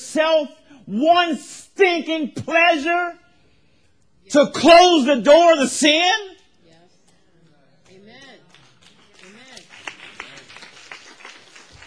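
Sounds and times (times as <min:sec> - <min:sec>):
speech: 0:00.1 - 0:03.2, 0:04.3 - 0:06.4
scattered hand claps from a crowd: 0:07.8 - 0:11.8.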